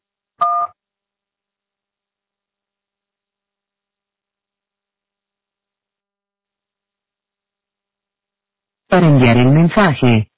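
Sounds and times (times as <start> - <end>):
voicemail tone before recording message: 8.9 - 10.2
speech: 8.9 - 10.3.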